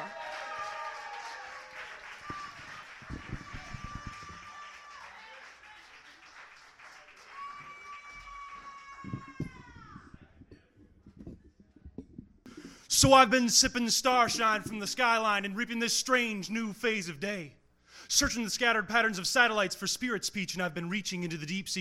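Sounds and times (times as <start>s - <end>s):
audience clapping for a poet: 0.0s - 10.0s
speech: 13.0s - 21.8s.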